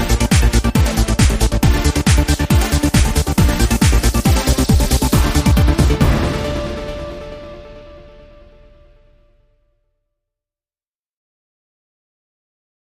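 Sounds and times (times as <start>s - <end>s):
kick drum rhythm: 0.0s - 7.4s.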